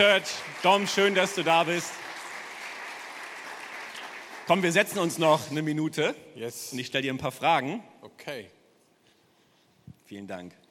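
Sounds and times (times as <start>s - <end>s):
speech: 0.0s - 2.1s, 4.5s - 8.6s, 10.1s - 10.6s
applause greeting a guest pastor coming on stage at a church event: 0.0s - 5.6s.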